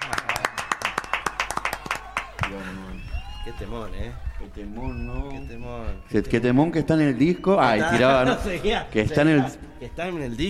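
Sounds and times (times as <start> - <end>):
hand claps: 0.0 - 2.6
speech: 3.4 - 10.4.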